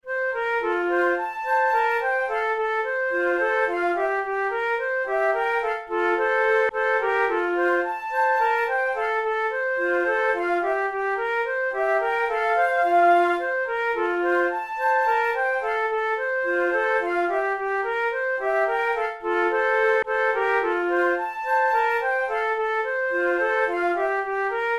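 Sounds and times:
flute method exercise: 0:00.0 - 0:24.7.

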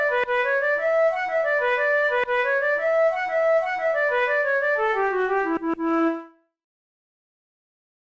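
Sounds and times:
jig tune: 0:00.0 - 0:06.3.

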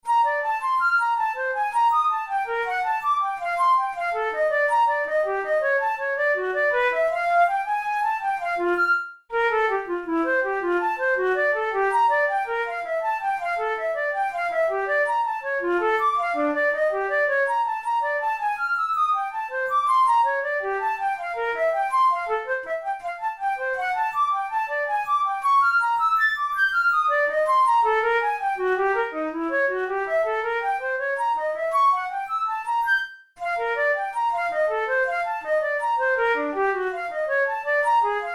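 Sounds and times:
solo flute studies: 0:00.0 - 0:38.3.

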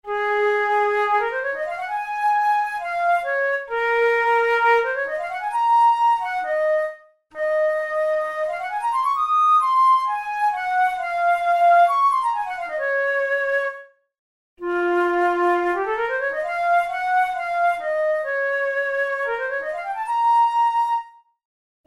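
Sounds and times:
studies for the Boehm flute: 0:00.0 - 0:14.0, 0:14.6 - 0:21.8.

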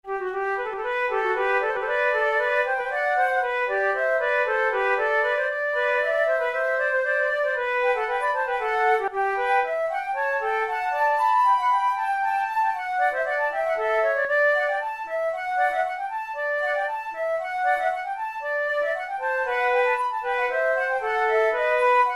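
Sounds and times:
vivace flute tunes: 0:00.1 - 0:22.1.

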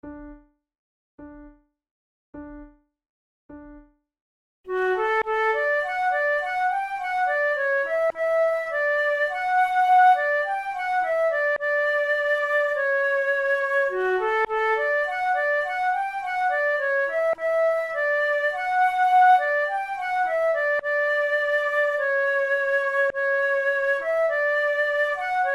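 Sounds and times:
flute duet: 0:04.7 - 0:25.5.

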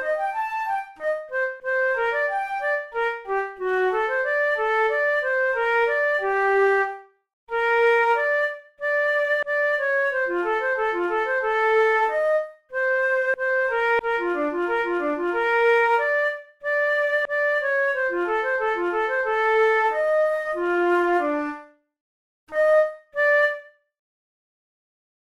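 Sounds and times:
flute duet in B flat major: 0:00.0 - 0:21.8, 0:22.5 - 0:23.8.

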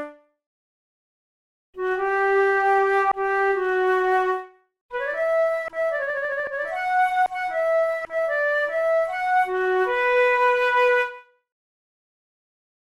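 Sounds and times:
two flutes playing an allemande: 0:01.8 - 0:11.3.

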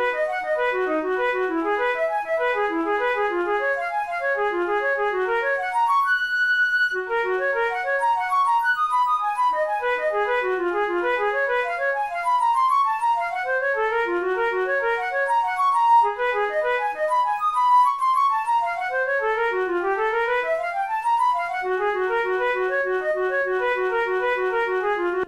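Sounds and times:
flute study from a flute method: 0:00.0 - 0:25.2.

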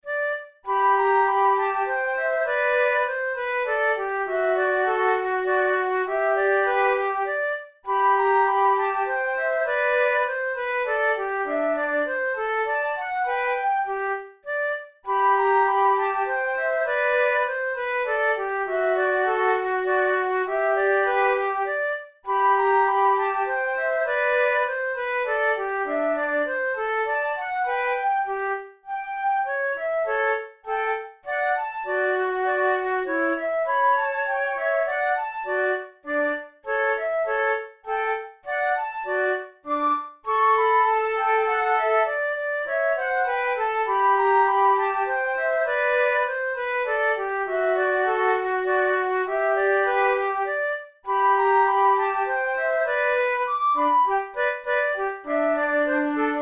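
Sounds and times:
flute method exercise: 0:00.0 - 0:56.3.

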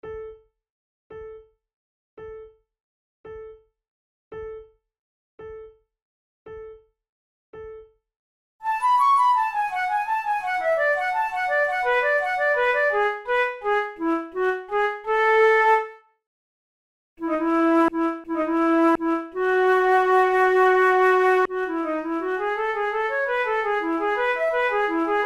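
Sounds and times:
flute in A major: 0:08.6 - 0:16.0, 0:17.2 - 0:25.2.

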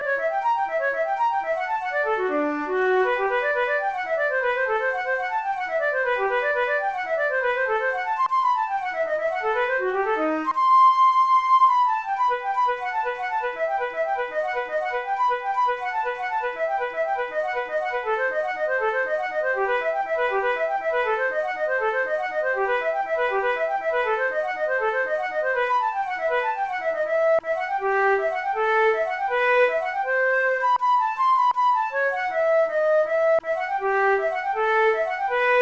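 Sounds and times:
caprice for transverse flute: 0:00.0 - 0:35.6.

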